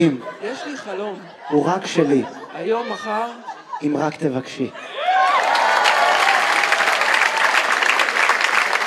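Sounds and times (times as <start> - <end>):
speech: 0.0 - 5.0
laughter: 0.0 - 5.6
audience clapping and cheering after a song at a live performance: 5.0 - 8.8.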